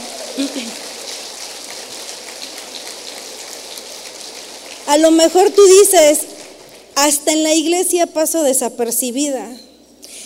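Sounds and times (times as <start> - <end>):
audience applause: 0.0 - 7.2
speech: 0.4 - 0.9, 4.9 - 6.4, 7.0 - 9.7.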